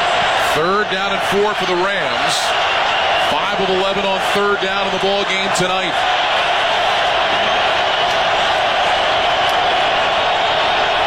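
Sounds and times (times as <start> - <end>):
stadium crowd roaring: 0.0 - 11.0
speech: 0.6 - 6.4.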